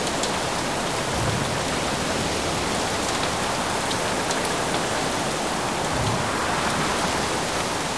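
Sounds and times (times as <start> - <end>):
rain: 0.0 - 7.9.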